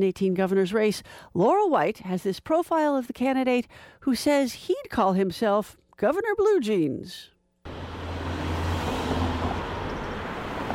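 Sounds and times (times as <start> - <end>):
speech: 0.0 - 7.3
cars speeding by on a busy street in Madison: 7.7 - 10.7.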